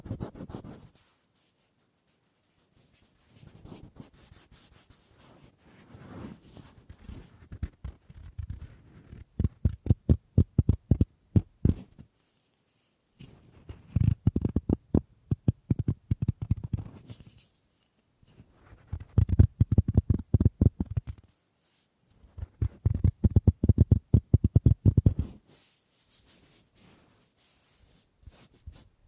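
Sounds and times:
quick dry taps, scratches and rubbing on wood: 0:07.5 - 0:12.0, 0:13.7 - 0:17.3, 0:18.6 - 0:21.3, 0:22.4 - 0:25.3.

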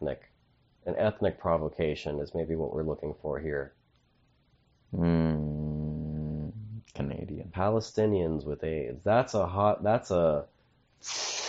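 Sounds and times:
speech: 0:00.0 - 0:03.8, 0:04.9 - 0:05.6, 0:07.0 - 0:11.4
voiced wordless vocal sounds: 0:04.9 - 0:07.5
flaming pan hissing: 0:11.0 - 0:11.4.

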